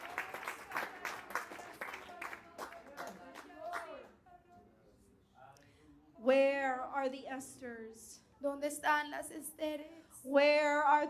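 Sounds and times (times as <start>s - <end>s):
audience clapping: 0.0s - 4.2s
speech: 6.3s - 11.0s.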